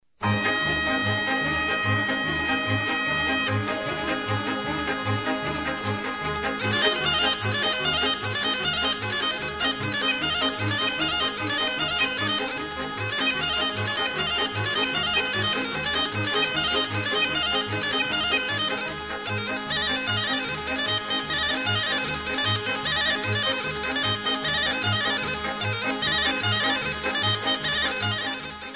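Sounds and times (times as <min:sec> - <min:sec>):
Romanian hora folk dance tune: 0:00.2 - 0:28.7.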